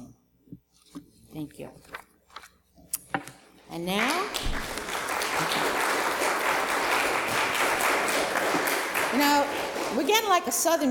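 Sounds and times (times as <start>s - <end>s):
speech: 1.4s - 2.0s, 3.7s - 4.7s, 9.1s - 10.8s
standing church congregation applause: 4.0s - 10.8s.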